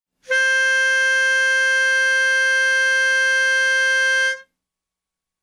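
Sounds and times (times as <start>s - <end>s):
lead melody: 0.3s - 4.4s.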